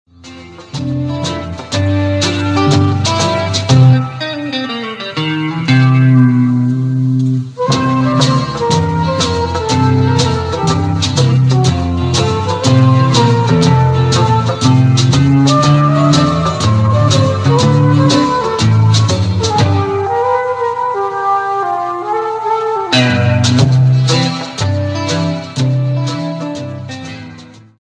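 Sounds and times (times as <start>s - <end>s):
trombone: 0.2s - 4.5s, 5.2s - 27.4s.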